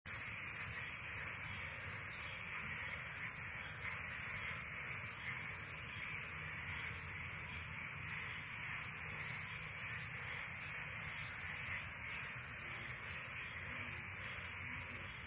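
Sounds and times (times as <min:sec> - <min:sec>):
crickets chirping: 0:00.1 - 0:15.2.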